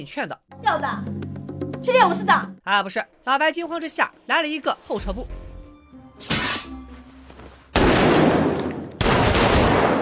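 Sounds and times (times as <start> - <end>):
speech: 0.0 - 5.4
loud gunshots in a tense indoor standoff: 7.8 - 10.0.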